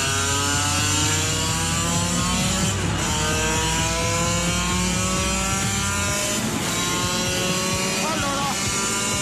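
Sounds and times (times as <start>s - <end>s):
motorcycle engine revving through the gears on a straight: 0.0s - 9.1s.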